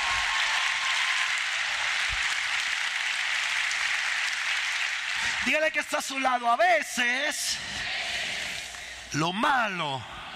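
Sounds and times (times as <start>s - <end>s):
audience applause: 0.0s - 5.8s
speech: 5.4s - 8.0s, 9.1s - 10.1s.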